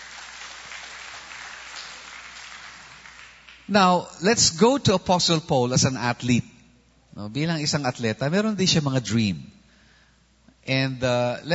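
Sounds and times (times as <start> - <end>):
church congregation clapping during a sermon: 0.0 - 3.9
speech: 3.7 - 6.5, 7.2 - 9.6, 10.6 - 11.5.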